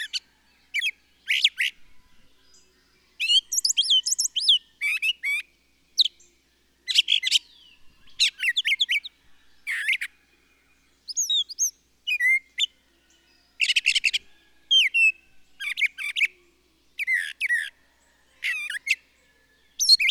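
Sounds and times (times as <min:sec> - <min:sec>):
bird song: 0:00.0 - 0:20.1.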